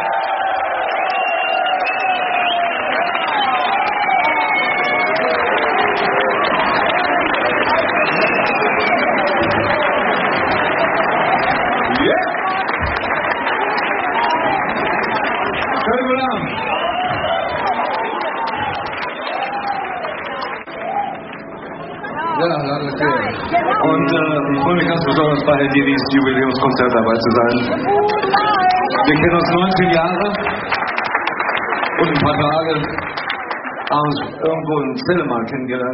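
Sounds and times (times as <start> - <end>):
audience applause: 0.0 - 35.9
whistles: 0.8 - 5.5, 7.6 - 10.0, 16.2 - 21.2
speech: 25.7 - 28.4, 29.1 - 30.7, 32.3 - 33.1, 34.0 - 35.9.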